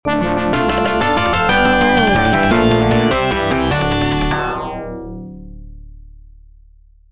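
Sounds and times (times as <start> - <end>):
fanfare: 0.1 - 4.7.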